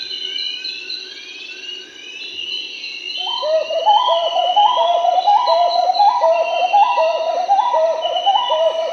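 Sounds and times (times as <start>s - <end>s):
marbled wood-quail Odontophorus gujanensis singing in Peru: 3.2s - 8.9s.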